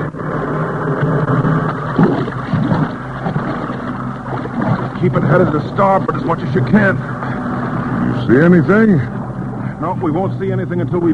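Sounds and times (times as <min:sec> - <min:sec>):
churning icy surf: 0:00.0 - 0:11.1
speech: 0:05.0 - 0:07.3, 0:08.3 - 0:09.2, 0:09.8 - 0:11.1.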